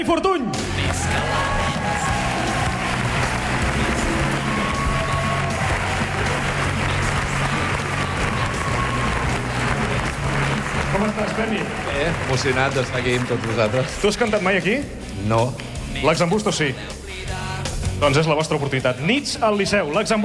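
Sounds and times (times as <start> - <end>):
speech: 0.0 - 2.1, 11.0 - 17.4, 18.0 - 20.2
audience applause: 0.7 - 14.8.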